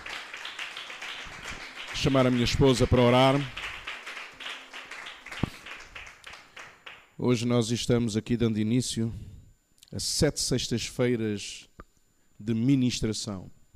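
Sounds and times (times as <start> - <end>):
audience clapping: 0.0 - 7.2
speech: 2.0 - 3.6, 7.2 - 9.3, 9.9 - 11.7, 12.4 - 13.6.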